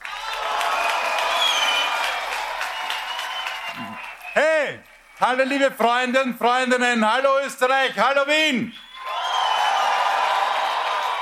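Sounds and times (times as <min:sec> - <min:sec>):
applause and cheering: 0:00.0 - 0:06.3, 0:08.7 - 0:11.2
speech: 0:04.4 - 0:08.8.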